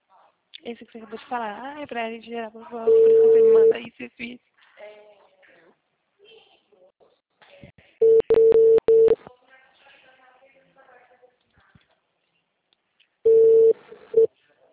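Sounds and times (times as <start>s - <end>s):
speech: 0.6s - 4.5s
telephone ringback tone while placing a call: 2.9s - 3.7s, 8.0s - 9.2s, 13.3s - 14.3s.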